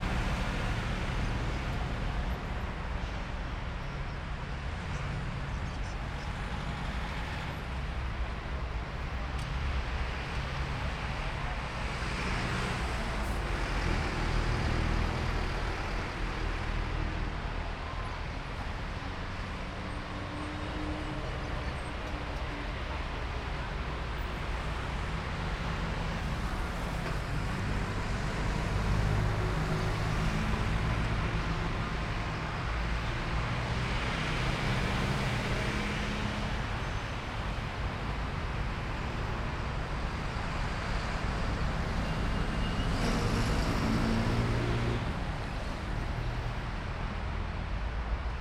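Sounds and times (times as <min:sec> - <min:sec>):
traffic with many buses: 0:00.0 - 0:48.3.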